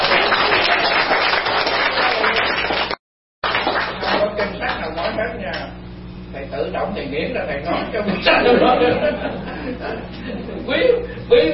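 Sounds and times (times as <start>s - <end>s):
audience applause during a Buddhist teacher's talk: 0.0s - 4.9s
speech: 6.5s - 11.5s
laughter: 7.7s - 10.7s.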